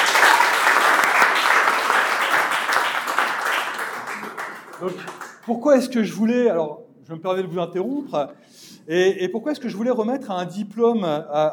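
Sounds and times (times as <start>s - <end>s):
audience applause: 0.0s - 5.5s
speech: 4.8s - 11.5s.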